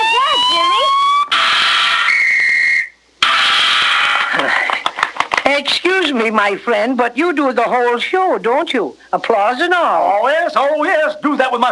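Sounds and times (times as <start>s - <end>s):
whistle blast: 0.0s - 4.2s
hissy noise: 0.0s - 11.7s
laughter: 4.3s - 5.4s
speech: 6.3s - 11.7s.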